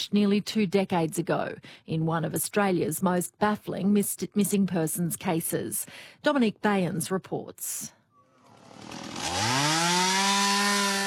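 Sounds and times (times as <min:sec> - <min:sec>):
speech: 0:00.0 - 0:08.0
chainsaw clearing bushland during a search: 0:08.3 - 0:11.0.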